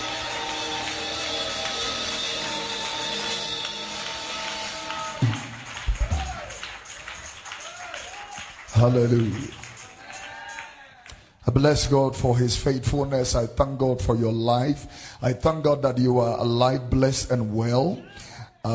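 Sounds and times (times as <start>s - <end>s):
audience clapping: 0.0s - 11.3s
speech: 8.8s - 9.6s, 11.6s - 18.7s.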